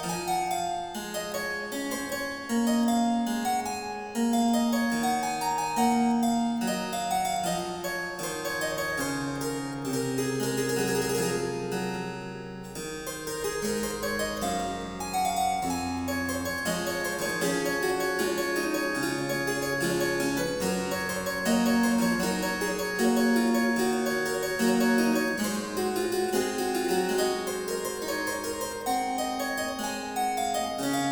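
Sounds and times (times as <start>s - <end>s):
harpsichord: 0.0s - 31.0s.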